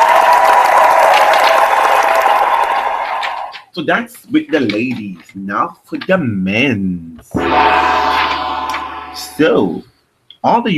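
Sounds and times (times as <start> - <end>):
round of applause: 0.0 - 3.7
speech: 3.8 - 8.0, 9.4 - 10.7.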